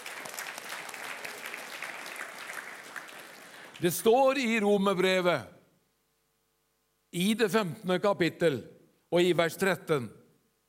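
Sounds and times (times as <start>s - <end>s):
audience applause: 0.0s - 3.8s
speech: 3.8s - 5.5s, 7.1s - 10.2s.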